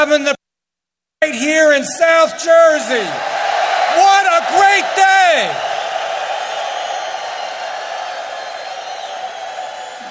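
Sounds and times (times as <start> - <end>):
speech: 0.0 - 0.4, 1.2 - 5.7
crowd cheering: 2.4 - 10.0
crowd applause: 3.2 - 10.0.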